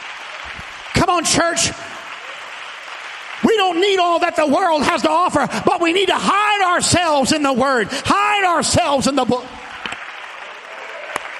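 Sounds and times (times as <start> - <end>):
audience applause: 0.0 - 6.8, 9.1 - 11.3
speech: 1.0 - 1.9, 3.6 - 9.6.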